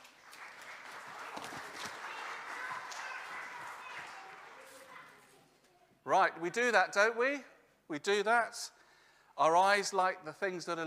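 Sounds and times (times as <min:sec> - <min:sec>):
audience clapping: 0:00.0 - 0:05.2
speech: 0:06.1 - 0:08.8, 0:09.4 - 0:10.8.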